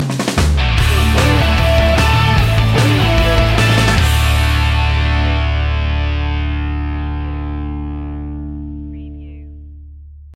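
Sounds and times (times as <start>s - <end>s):
music sting: 0.7s - 8.6s.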